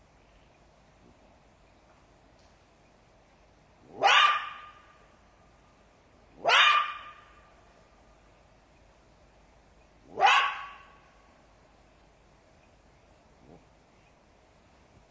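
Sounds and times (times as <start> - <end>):
jackal yelping barks: 3.8 - 5.1, 6.3 - 7.6, 10.0 - 11.2.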